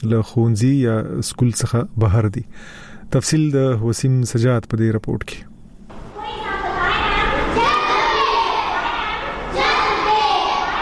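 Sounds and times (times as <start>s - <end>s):
speech: 0.0s - 5.5s
children's voices at a school for working children in Peshawar: 5.9s - 10.8s.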